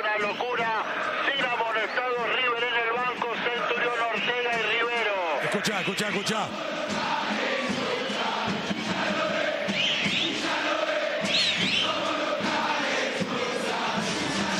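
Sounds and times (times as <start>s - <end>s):
River Plate fans chanting in the stadium stands: 0.0s - 14.5s
speech: 5.6s - 7.4s.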